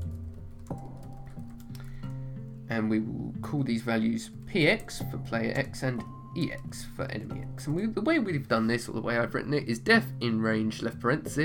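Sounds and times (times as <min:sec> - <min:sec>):
typing code on a computer keyboard: 0:00.0 - 0:02.2
speech: 0:02.7 - 0:11.4.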